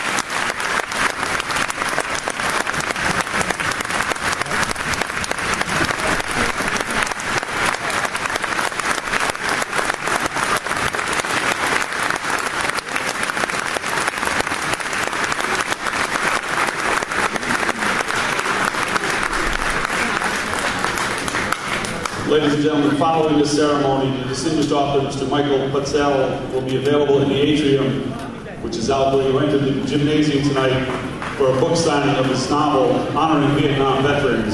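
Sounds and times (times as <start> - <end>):
audience applause: 0.0 - 23.1, 30.6 - 32.4
speech: 22.4 - 28.2, 28.8 - 34.5.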